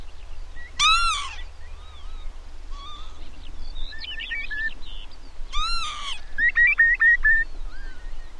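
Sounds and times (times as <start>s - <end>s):
grassland ambience: 0.0s - 8.3s.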